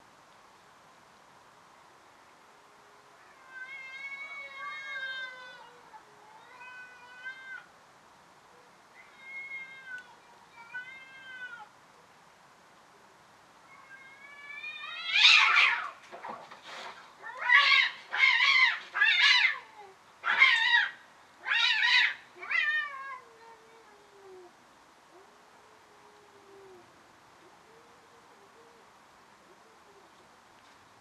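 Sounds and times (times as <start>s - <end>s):
background hiss: 0.0s - 31.0s
cat fight yowling: 3.2s - 7.7s, 9.0s - 11.7s, 13.7s - 16.0s, 17.2s - 25.4s.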